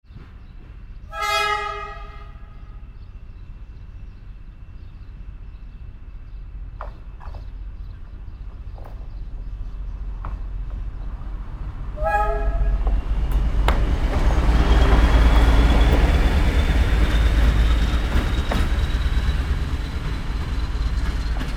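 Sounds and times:
train passing: 0.1 - 21.5
train hooter: 1.1 - 2.8, 12.0 - 12.9.

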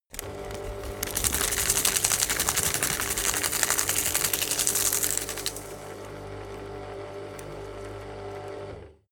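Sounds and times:
shredder shredding: 0.0 - 9.1.

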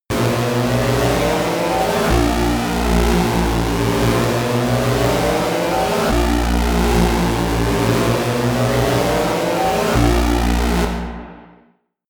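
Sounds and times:
detuned destroyer horror sound: 0.1 - 11.4.

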